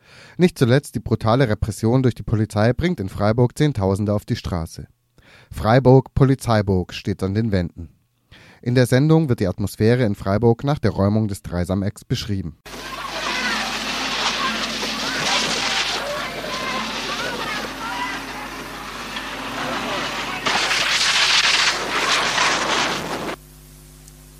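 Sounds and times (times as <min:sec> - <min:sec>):
speech: 0:00.4 - 0:12.8
police water cannon hitting the microphone: 0:12.7 - 0:23.4.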